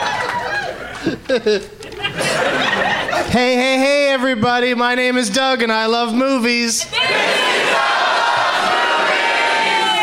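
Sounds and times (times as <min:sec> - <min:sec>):
comedy club audience cheering loudly: 0:00.0 - 0:01.1, 0:06.9 - 0:10.0
laughter: 0:00.0 - 0:03.6
speech: 0:01.0 - 0:02.4, 0:03.2 - 0:07.6.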